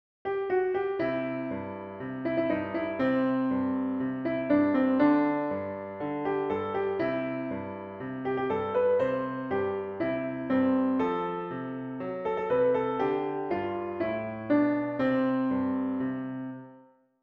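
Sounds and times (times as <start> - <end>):
piano: 0.2 - 17.2.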